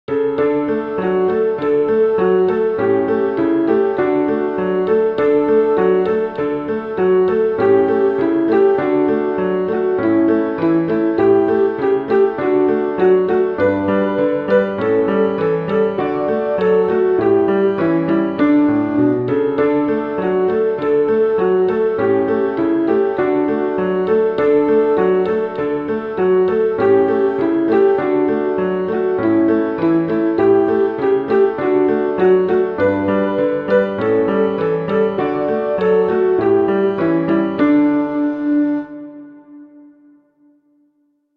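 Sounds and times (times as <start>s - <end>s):
carol: 0.1s - 40.2s.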